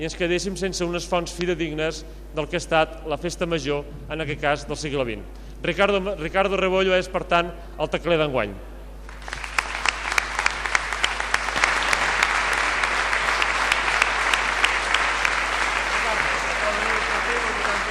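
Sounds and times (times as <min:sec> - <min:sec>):
speech: 0:00.0 - 0:08.7
audience applause: 0:09.0 - 0:17.8.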